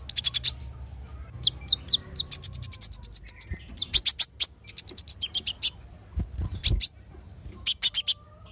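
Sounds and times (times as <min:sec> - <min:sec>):
caged Van Hasselt's sunbird singing: 0:00.0 - 0:05.8, 0:07.6 - 0:08.4.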